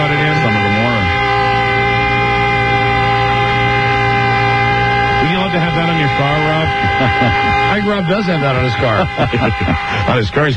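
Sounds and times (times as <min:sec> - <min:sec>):
air raid warning siren: 0:00.0 - 0:10.5
speech: 0:05.6 - 0:10.5
laughter: 0:06.4 - 0:10.5.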